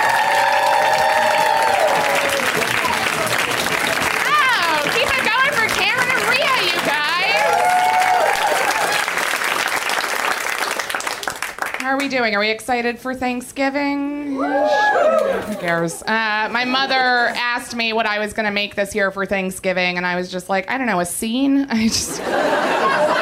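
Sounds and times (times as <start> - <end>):
whoops and cheers: 0.0 - 3.3, 7.1 - 9.1, 14.4 - 15.6
large audience applauding: 0.0 - 12.1
speech: 12.1 - 23.0
laughter: 16.4 - 17.4, 21.8 - 23.2.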